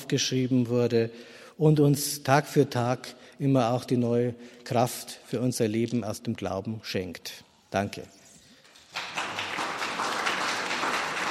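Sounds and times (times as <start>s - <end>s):
speech: 0.1s - 8.2s
audience applause: 8.8s - 11.3s.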